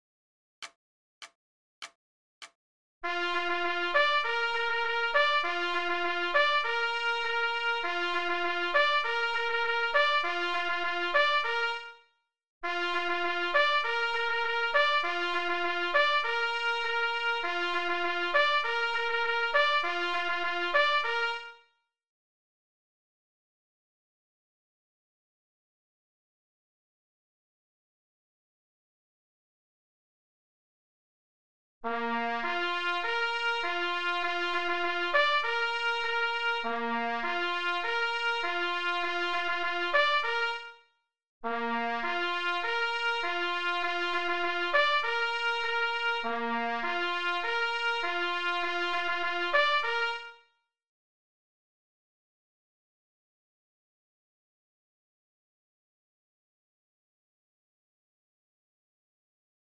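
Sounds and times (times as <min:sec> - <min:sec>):
horn: 0:03.0 - 0:21.7, 0:31.8 - 0:50.5.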